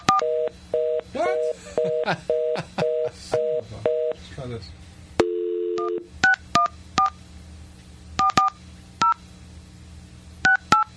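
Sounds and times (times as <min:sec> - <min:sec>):
telephone keypad dialing tones: 0:00.0 - 0:00.9, 0:05.2 - 0:07.2, 0:08.2 - 0:09.2, 0:10.5 - 0:10.9
speech: 0:01.6 - 0:02.9, 0:03.7 - 0:04.8
telephone dial tone: 0:05.2 - 0:06.1.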